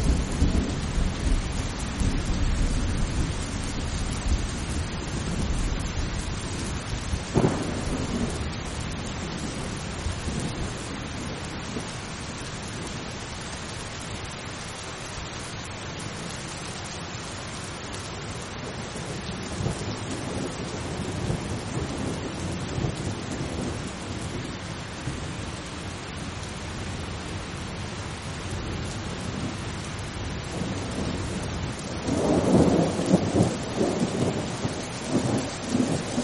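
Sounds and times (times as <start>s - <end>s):
thunder rolling: 0.0s - 13.1s, 18.7s - 25.4s, 30.4s - 36.2s
steady calm rain: 0.0s - 36.2s
sharp thunder crack: 7.4s - 8.4s.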